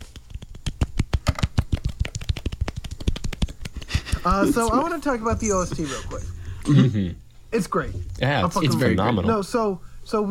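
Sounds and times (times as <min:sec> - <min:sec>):
small claps: 0:00.0 - 0:04.3
speech: 0:04.2 - 0:10.2.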